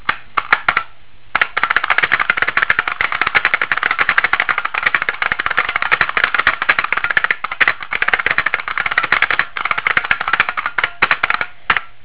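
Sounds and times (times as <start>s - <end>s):
typing: 1.4s - 11.9s.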